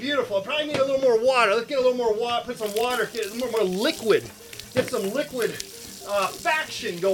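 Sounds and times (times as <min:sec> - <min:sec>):
speech: 0:00.3 - 0:07.1
ice and fruit chunks rattling in blender jar: 0:02.6 - 0:07.1.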